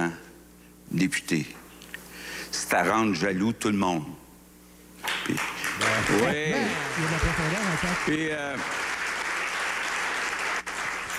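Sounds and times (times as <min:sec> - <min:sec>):
speech: 0:00.9 - 0:01.6, 0:02.5 - 0:04.2, 0:05.3 - 0:08.8
applause: 0:05.0 - 0:11.1.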